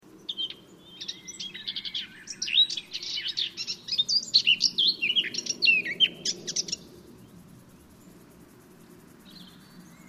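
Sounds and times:
Eurasian blackcap Sylvia atricapilla song: 0.2s - 6.9s.

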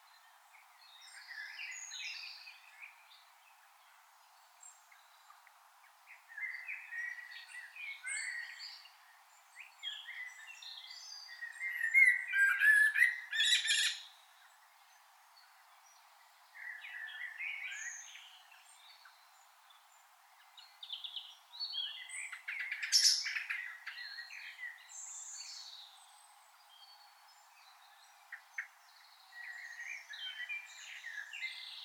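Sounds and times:
Common blackbird singing: 0.0s - 3.2s, 6.1s - 14.6s, 15.9s - 19.8s, 20.5s - 31.8s
small birds twittering: 0.0s - 31.8s.

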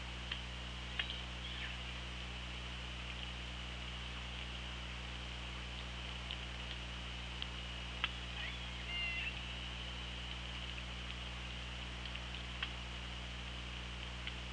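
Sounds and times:
hydrophone hiss: 0.0s - 14.5s
low electrical hum: 0.0s - 14.5s
killer whale clicks: 5.7s - 8.2s, 10.2s - 12.8s.

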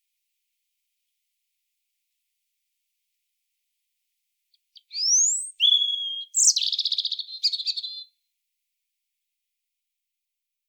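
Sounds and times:
European robin singing: 4.8s - 8.1s.

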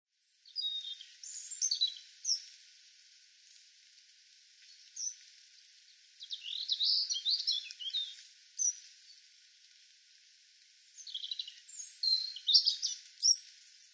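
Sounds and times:
European robin singing: 0.5s - 2.5s, 4.7s - 5.2s, 6.2s - 8.8s, 11.0s - 13.4s.

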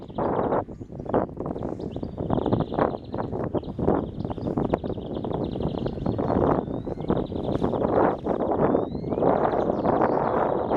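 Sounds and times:
Common chaffinch Fringilla coelebs singing: 0.0s - 10.7s.

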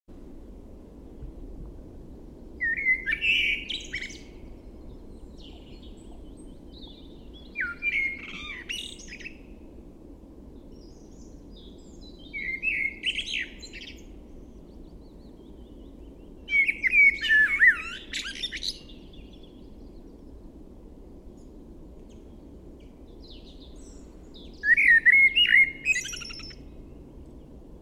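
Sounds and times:
background rumble: 0.2s - 2.6s
Eurasian blackbird singing: 2.6s - 9.6s, 10.7s - 20.4s, 22.1s - 27.6s.

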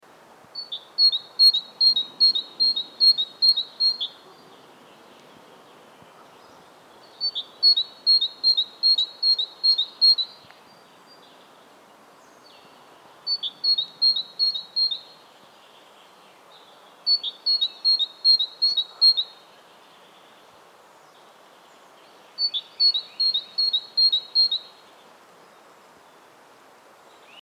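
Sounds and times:
great tit singing its see-saw phrase: 0.6s - 4.6s, 6.2s - 10.4s, 13.3s - 15.1s, 17.1s - 19.3s, 22.4s - 24.7s.

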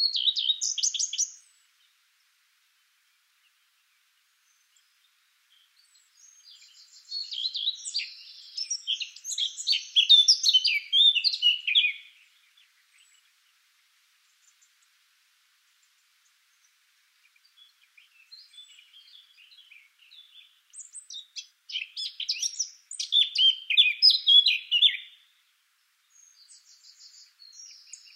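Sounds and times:
Eurasian blackcap Sylvia atricapilla singing: 0.0s - 1.6s, 5.6s - 13.2s, 17.4s - 25.2s, 26.2s - 28.1s.

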